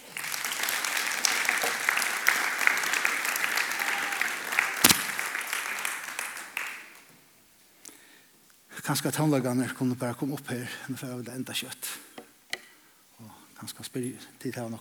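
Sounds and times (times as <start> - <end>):
audience applause: 0.0 - 7.1
speech: 8.9 - 12.0, 13.7 - 14.7.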